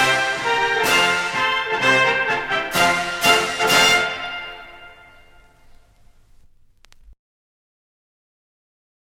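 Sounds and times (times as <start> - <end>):
military march music: 0.0 - 5.7.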